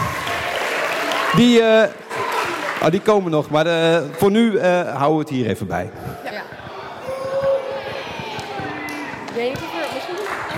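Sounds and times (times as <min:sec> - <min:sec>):
audience applause at a Christmas event: 0:00.0 - 0:04.6, 0:07.4 - 0:10.5
speech: 0:01.3 - 0:02.0, 0:02.8 - 0:06.3, 0:09.4 - 0:09.7.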